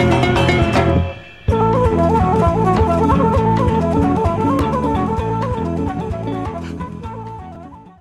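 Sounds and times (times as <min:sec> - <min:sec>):
Spanish breakbeat: 0:00.0 - 0:05.5.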